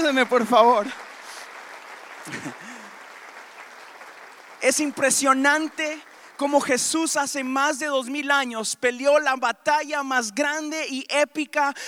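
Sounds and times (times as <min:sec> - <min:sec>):
audience applause: 0:00.0 - 0:07.1
speech: 0:00.1 - 0:01.0, 0:02.3 - 0:02.7, 0:04.6 - 0:11.8
laughter: 0:02.2 - 0:03.0.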